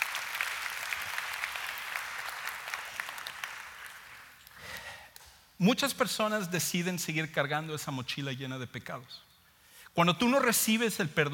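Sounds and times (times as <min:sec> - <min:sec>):
audience applause: 0:00.0 - 0:04.5
speech: 0:05.6 - 0:09.3, 0:10.0 - 0:11.3.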